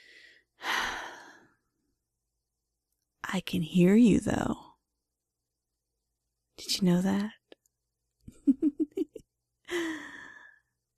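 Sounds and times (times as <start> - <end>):
quiet breathing: 0.0 - 1.6, 9.7 - 10.8
speech: 3.3 - 4.7, 6.6 - 7.4.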